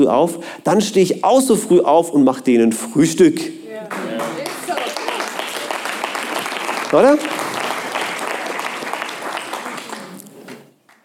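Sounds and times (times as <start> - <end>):
speech: 0.0 - 4.2, 6.9 - 7.4
audience clapping: 3.9 - 11.0.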